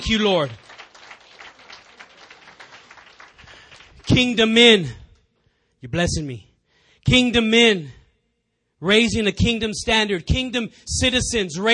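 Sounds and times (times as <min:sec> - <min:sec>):
audience clapping: 0:00.0 - 0:04.9
speech: 0:00.1 - 0:00.8, 0:04.1 - 0:05.0, 0:05.8 - 0:08.0, 0:08.8 - 0:11.7.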